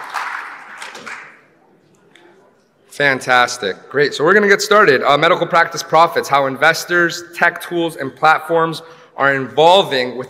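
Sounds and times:
audience applause for a conference panel: 0:00.0 - 0:01.5
speech: 0:03.0 - 0:10.2.

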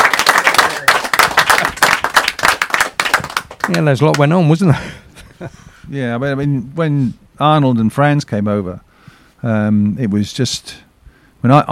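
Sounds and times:
crowd applauding for the team: 0:00.0 - 0:04.3
speech: 0:03.7 - 0:08.8, 0:09.4 - 0:10.8, 0:11.4 - 0:11.7.

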